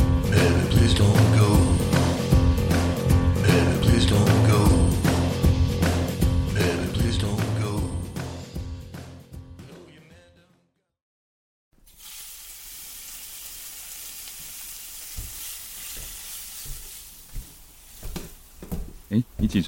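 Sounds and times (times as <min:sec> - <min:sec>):
music: 0:00.0 - 0:11.0
egg pancake sizzling and crackling in a hot pan: 0:11.8 - 0:18.7
speech: 0:19.2 - 0:19.6.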